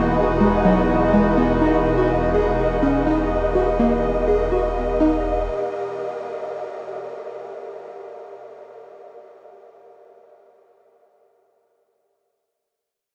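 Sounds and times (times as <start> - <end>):
electronic ambient music: 0.0 - 7.2.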